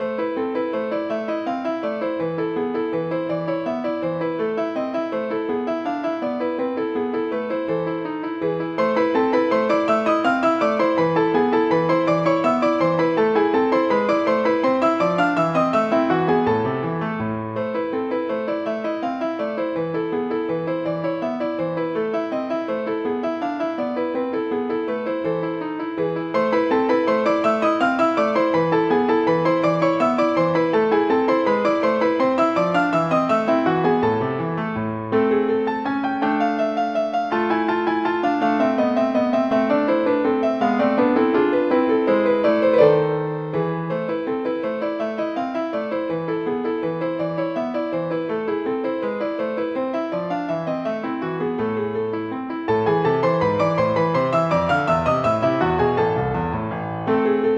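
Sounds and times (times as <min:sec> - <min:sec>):
piano sonata variation: 0:00.0 - 0:57.5.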